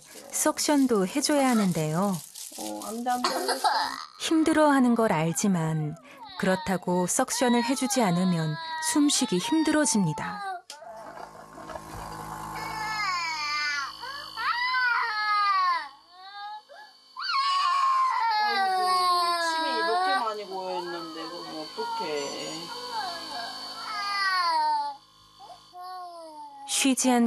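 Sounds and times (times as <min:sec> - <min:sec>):
speech: 0:00.4 - 0:10.5, 0:26.9 - 0:27.2
infant crying: 0:06.2 - 0:10.7, 0:12.6 - 0:26.7.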